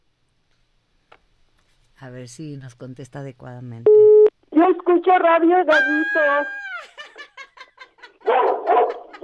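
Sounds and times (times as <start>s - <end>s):
speech: 2.2s - 6.9s
laughter: 5.7s - 9.2s
small dog barking excitedly: 8.3s - 9.2s.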